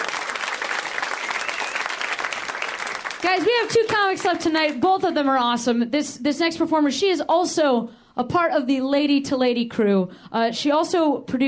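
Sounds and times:
crowd audience round of applause: 0.0s - 4.4s
speech: 3.2s - 11.4s.

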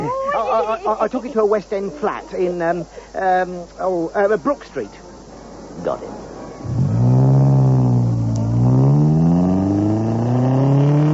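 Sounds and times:
speech: 0.4s - 5.0s, 5.8s - 6.8s
car engine droning while driving and accelerating through the gears: 6.6s - 11.1s.

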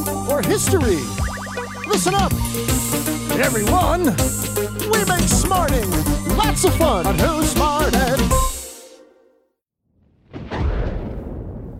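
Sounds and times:
speech: 0.3s - 1.3s, 1.9s - 8.5s
thunder sound effect: 10.0s - 11.7s.

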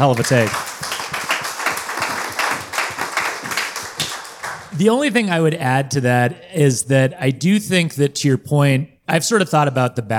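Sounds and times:
speech: 0.0s - 0.7s, 4.8s - 10.1s
crowd applauding: 0.0s - 4.8s.

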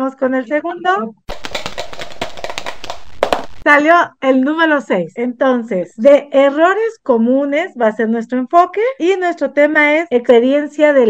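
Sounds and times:
speech: 0.1s - 1.2s, 3.6s - 11.0s
dice rattling and clattering: 1.3s - 3.6s.

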